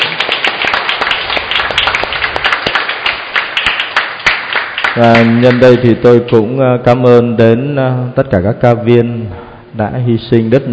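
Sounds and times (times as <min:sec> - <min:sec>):
crowd loud sustained applause: 0:00.0 - 0:05.9
speech: 0:05.0 - 0:10.7.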